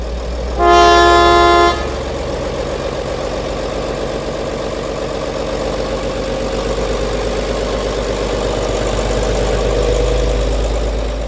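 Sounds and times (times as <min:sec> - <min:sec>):
diesel train engine rumbling while departing: 0:00.0 - 0:11.2
diesel train horn: 0:00.6 - 0:02.2.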